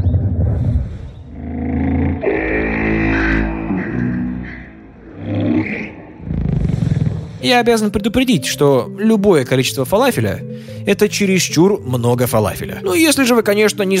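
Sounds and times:
alien creature sounds in a sauna: 0.5s - 7.4s
speech: 7.4s - 13.9s.

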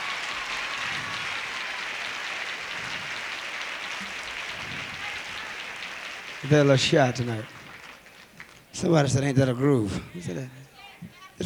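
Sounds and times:
audience applause: 0.0s - 9.0s
speech: 6.4s - 7.6s, 8.8s - 11.4s.

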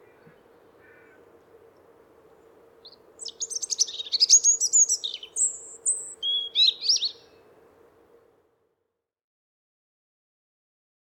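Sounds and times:
faint constant hum: 0.0s - 8.8s
European robin singing: 2.8s - 7.4s.

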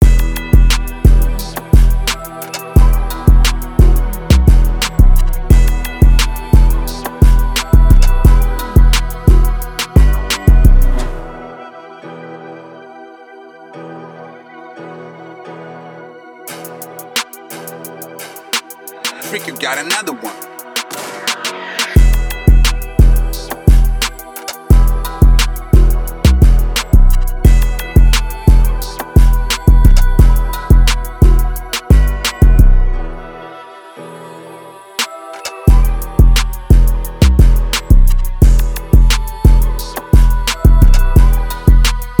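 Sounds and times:
type beat at 175 bpm in E minor: 0.0s - 10.8s, 16.5s - 32.6s, 35.4s - 42.1s.

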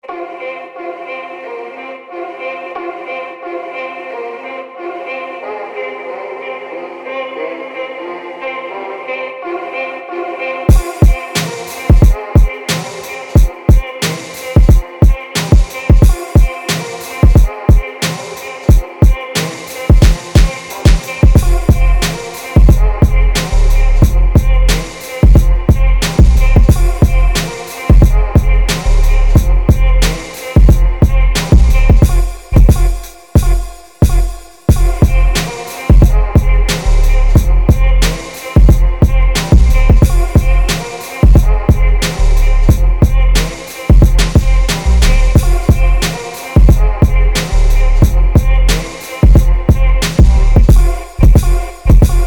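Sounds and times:
music in F major at 90 bpm: 0.0s - 52.2s.

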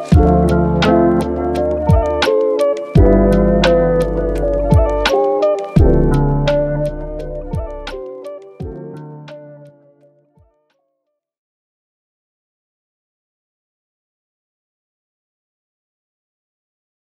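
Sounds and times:
lofi hip-hop beats: 0.0s - 9.8s.

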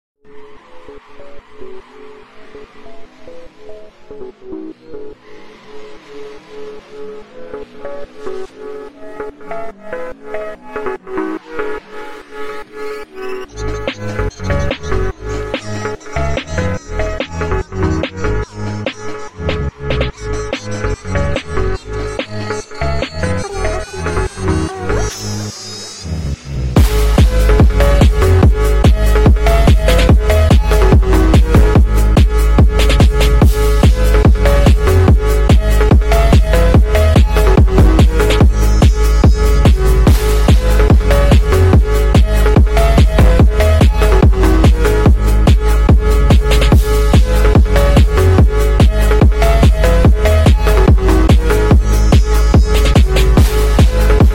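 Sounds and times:
sped up phonk music: 0.2s - 54.3s.

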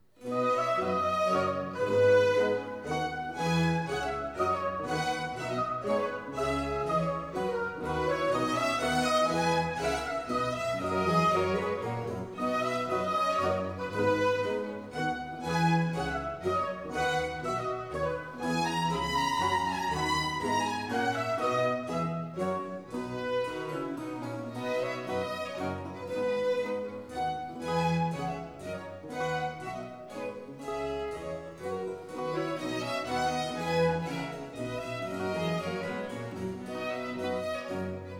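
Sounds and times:
minuet: 0.0s - 38.1s.

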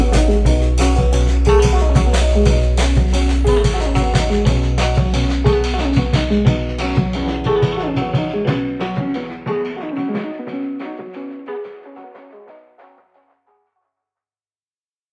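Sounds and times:
samba music: 0.0s - 11.4s.

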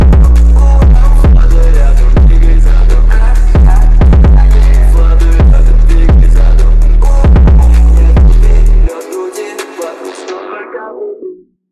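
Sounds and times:
bass: 0.0s - 8.9s.

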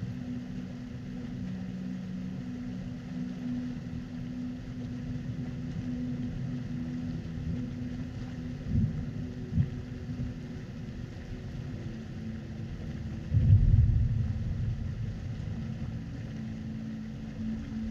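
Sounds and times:
nature white noise: 0.0s - 17.8s.

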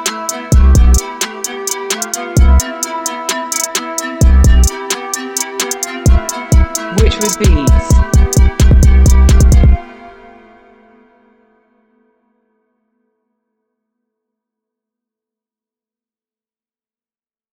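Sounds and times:
training beat: 0.3s - 9.8s.

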